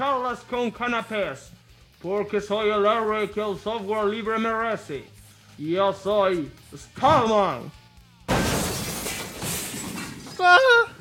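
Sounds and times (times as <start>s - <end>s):
speech: 0.0s - 7.8s, 10.4s - 10.9s
glass window shattering: 8.3s - 10.6s.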